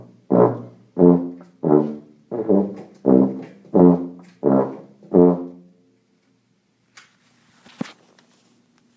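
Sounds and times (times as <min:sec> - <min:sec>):
tuba: 0:00.0 - 0:05.8.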